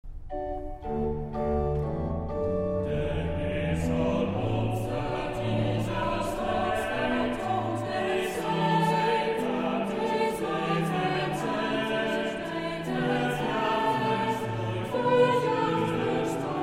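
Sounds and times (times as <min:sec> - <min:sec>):
vocal psalm singing: 0:00.8 - 0:16.6.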